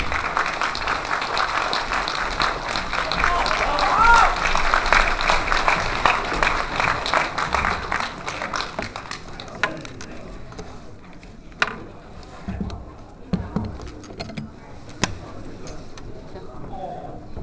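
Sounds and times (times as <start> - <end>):
room full of people applauding: 0.0 - 10.0.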